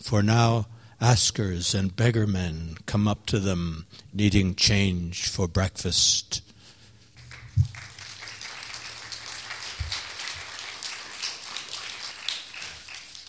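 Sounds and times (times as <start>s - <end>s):
speech: 0.0s - 6.4s
audience clapping after a poem reading: 7.1s - 13.2s.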